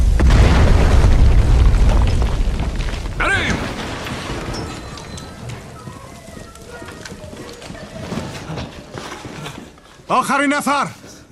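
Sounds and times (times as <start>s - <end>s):
claymore mines detonating: 0.0s - 6.1s
speech: 10.1s - 11.0s.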